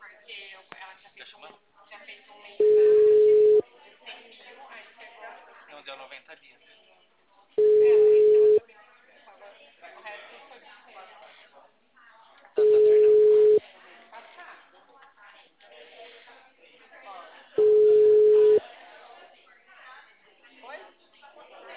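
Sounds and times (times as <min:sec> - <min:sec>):
people talking: 0:01.9 - 0:05.5, 0:07.4 - 0:21.7
telephone ringback tone while a call is placed: 0:02.6 - 0:03.6, 0:07.6 - 0:08.6, 0:12.6 - 0:13.6, 0:17.6 - 0:18.6.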